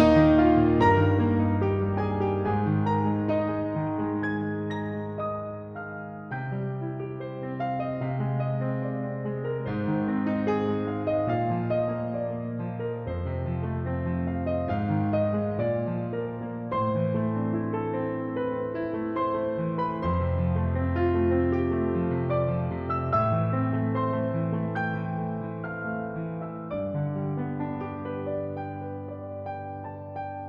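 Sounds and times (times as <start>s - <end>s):
piano sketch: 0.0s - 30.4s.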